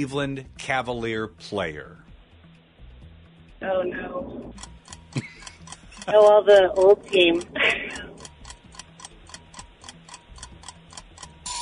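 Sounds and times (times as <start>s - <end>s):
speech: 0.0s - 2.0s, 3.6s - 5.3s, 6.1s - 8.1s
game timer ticking down: 4.5s - 11.6s.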